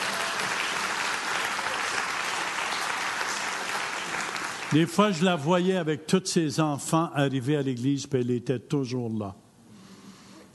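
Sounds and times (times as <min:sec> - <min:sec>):
audience applause: 0:00.0 - 0:05.2
speech: 0:04.7 - 0:09.4.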